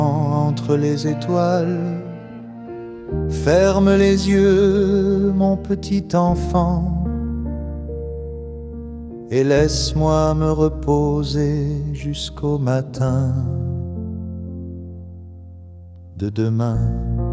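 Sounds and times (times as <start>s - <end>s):
man singing a lullaby: 0.0s - 2.4s, 3.3s - 7.2s, 9.3s - 14.0s, 16.1s - 17.2s.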